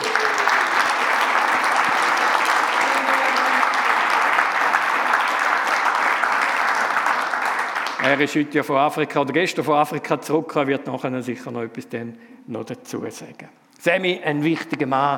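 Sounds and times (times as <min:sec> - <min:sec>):
audience applause: 0:00.0 - 0:08.4
speech: 0:08.1 - 0:15.1.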